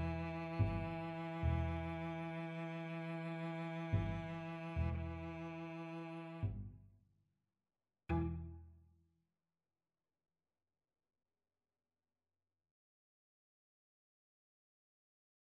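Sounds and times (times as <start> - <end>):
cello and bass duet: 0.0 - 6.9, 8.1 - 8.7.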